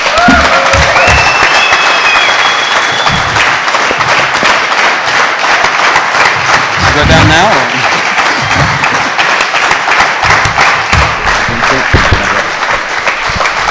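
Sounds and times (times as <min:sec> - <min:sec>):
audience applause welcoming a guest on stage: 0:00.0 - 0:13.6
high whistles: 0:01.0 - 0:03.4.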